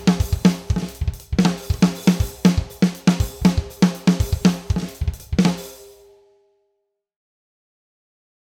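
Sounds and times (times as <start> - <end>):
drums: 0.0 - 6.2.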